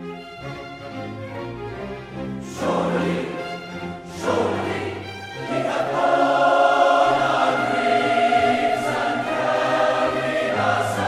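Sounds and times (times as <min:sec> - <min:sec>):
concert choir singing: 0:02.3 - 0:11.0.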